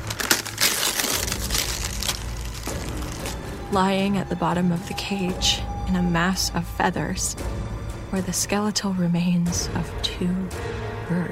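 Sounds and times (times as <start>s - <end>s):
gift wrapping paper being torn: 0.0s - 3.6s
speech: 3.7s - 11.3s.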